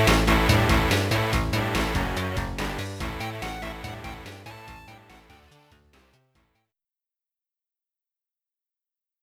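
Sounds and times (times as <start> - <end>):
competition match battle victory music: 0.0 - 6.1.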